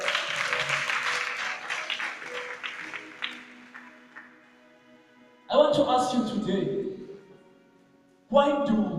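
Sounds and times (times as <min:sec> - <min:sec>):
audience clapping hands: 0:00.0 - 0:04.5
speech: 0:05.7 - 0:06.8, 0:08.3 - 0:08.8.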